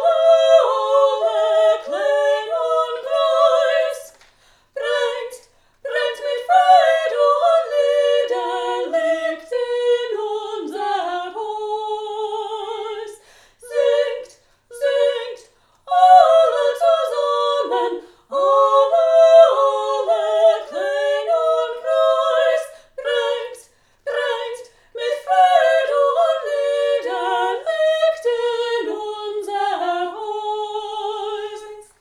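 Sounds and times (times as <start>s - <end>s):
first and second soprano voices singing: 0.0s - 32.0s.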